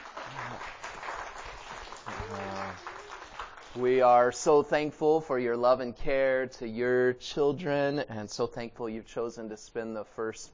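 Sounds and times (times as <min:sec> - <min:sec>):
audience applause: 0:00.0 - 0:04.0
speech: 0:03.8 - 0:10.5.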